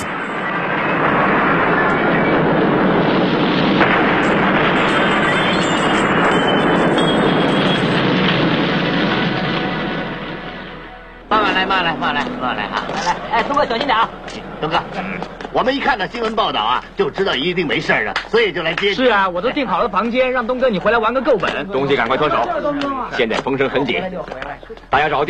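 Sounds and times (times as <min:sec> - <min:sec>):
gas explosion roaring: 0:00.0 - 0:23.3
speech: 0:13.6 - 0:25.2.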